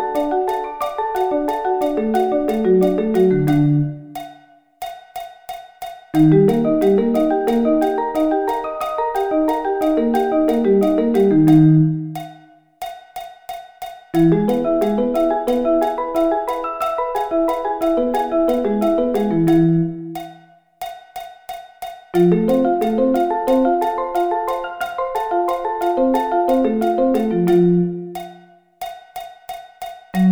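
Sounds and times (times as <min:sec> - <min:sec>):
arpeggio inversions: 0:00.0 - 0:04.2, 0:06.2 - 0:12.2, 0:14.2 - 0:20.2, 0:22.2 - 0:28.2.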